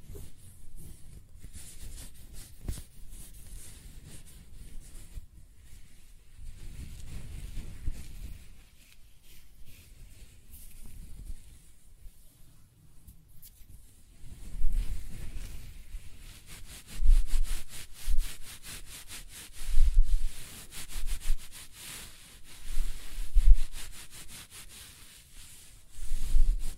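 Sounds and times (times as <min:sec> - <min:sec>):
close-up hair brushing and scratching: 0:00.0 - 0:26.7
quiet hiss: 0:00.0 - 0:26.7.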